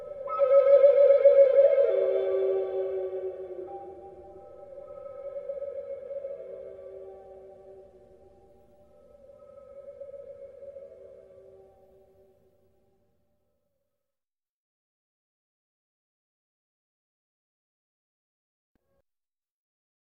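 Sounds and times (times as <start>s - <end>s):
flute: 0.0s - 12.3s.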